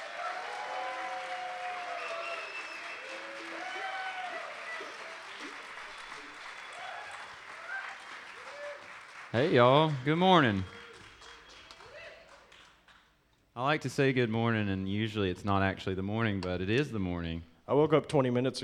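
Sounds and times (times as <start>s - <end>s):
audience applause welcoming a band: 0.0s - 13.0s
speech: 9.3s - 10.8s, 13.7s - 18.6s.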